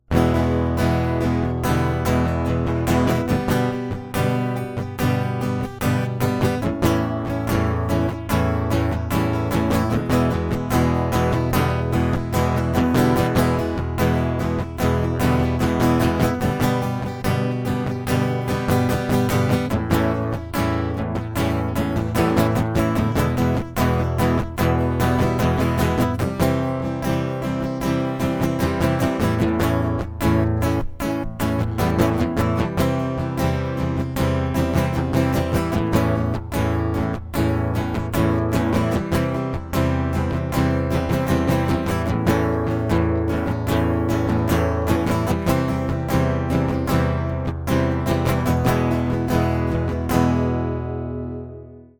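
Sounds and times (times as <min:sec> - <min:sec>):
acoustic music: 0:00.0 - 0:51.9.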